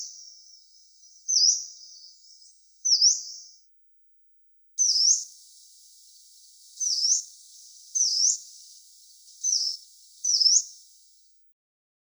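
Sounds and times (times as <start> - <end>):
yellow-browed warbler calling: 4.8 - 11.4.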